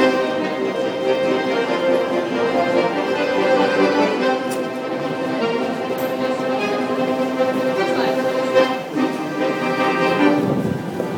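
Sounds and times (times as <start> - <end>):
station noise: 0.0 - 11.1
two accordions playing at U-Bahn Potsdamer Platz: 0.0 - 11.1
footsteps: 4.4 - 11.1.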